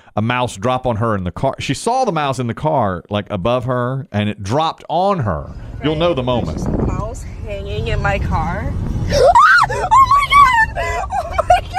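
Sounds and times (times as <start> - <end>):
speech: 0.2 - 10.2
person imitating a frightened scream: 9.1 - 10.7
laughter: 9.1 - 11.7.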